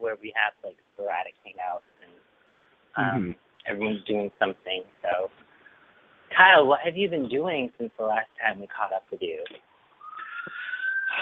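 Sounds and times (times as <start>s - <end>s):
speech: 0.2s - 1.4s, 3.0s - 5.3s, 6.4s - 9.7s
siren wailing: 10.0s - 11.1s.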